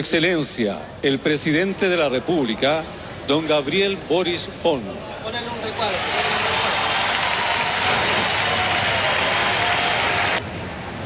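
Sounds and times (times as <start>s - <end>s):
speech: 0.0s - 6.2s
applause for the outgoing president: 5.9s - 10.4s.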